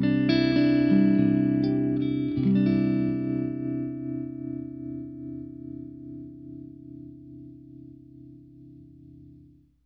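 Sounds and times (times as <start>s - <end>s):
clean electric guitar: 0.0s - 9.8s.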